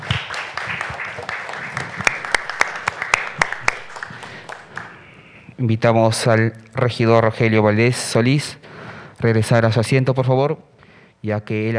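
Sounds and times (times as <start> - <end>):
audience applause: 0.0 - 5.1
speech: 5.6 - 8.6, 9.2 - 11.7.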